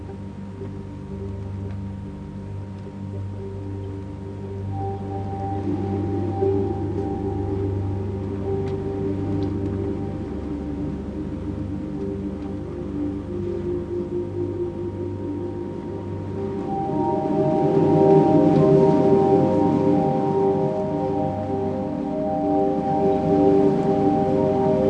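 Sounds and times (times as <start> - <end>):
sirens: 5.2 - 24.8.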